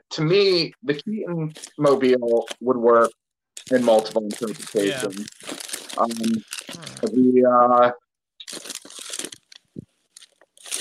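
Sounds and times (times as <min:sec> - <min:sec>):
speech: 0:00.2 - 0:08.7
crunching while eating near the microphone: 0:03.6 - 0:07.2, 0:08.4 - 0:10.7.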